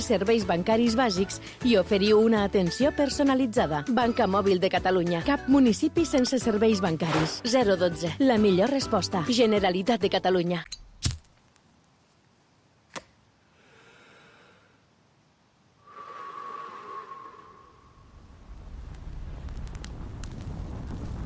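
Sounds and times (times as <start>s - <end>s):
speech: 0.0s - 10.8s
fire burning: 16.8s - 21.2s
match strike: 18.5s - 21.2s.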